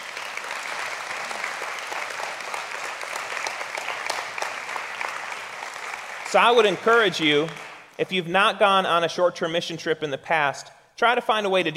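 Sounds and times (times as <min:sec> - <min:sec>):
church congregation clapping for a mission trip team: 0:00.0 - 0:08.3
speech: 0:06.3 - 0:11.7.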